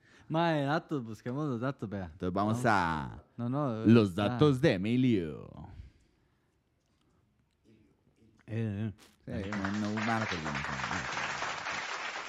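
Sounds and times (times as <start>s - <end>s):
speech: 0.3s - 5.7s, 8.5s - 11.3s
applause: 9.4s - 12.2s.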